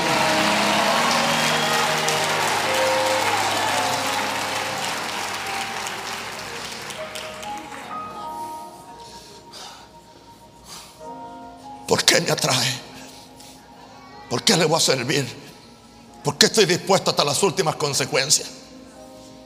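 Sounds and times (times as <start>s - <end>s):
audience applause: 0.0s - 8.5s
speech: 12.2s - 12.8s, 14.3s - 15.5s, 16.3s - 18.7s.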